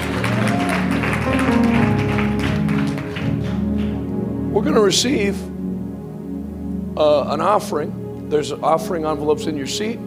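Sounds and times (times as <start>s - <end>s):
audience clapping hands: 0.0s - 4.3s
music: 0.0s - 10.0s
speech: 4.6s - 5.5s, 7.0s - 10.0s.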